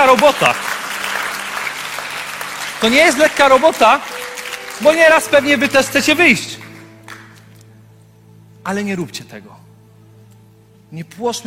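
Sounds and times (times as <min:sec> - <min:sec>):
audience applauding: 0:00.0 - 0:07.6
speech: 0:00.1 - 0:00.7, 0:02.8 - 0:04.2, 0:04.8 - 0:06.6, 0:08.6 - 0:09.6, 0:10.9 - 0:11.4.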